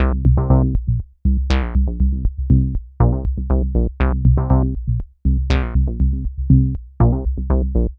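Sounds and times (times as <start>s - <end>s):
proto-techno bassline: 0.0s - 7.9s.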